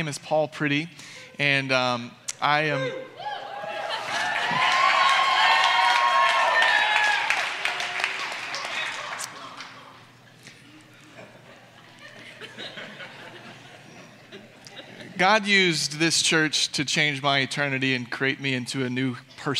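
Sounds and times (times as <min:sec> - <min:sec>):
speech: 0:00.0 - 0:03.3, 0:15.2 - 0:19.5
scattered cheers: 0:03.2 - 0:09.6
church audience applauding: 0:03.4 - 0:10.1
laughter: 0:09.0 - 0:15.2.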